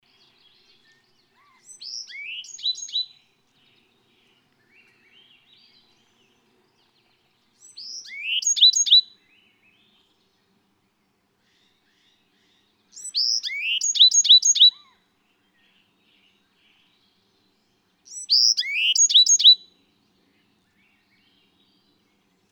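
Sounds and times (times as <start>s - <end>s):
bird whistling and twittering: 1.6s - 3.1s, 7.6s - 9.2s, 13.0s - 14.9s, 18.1s - 19.7s.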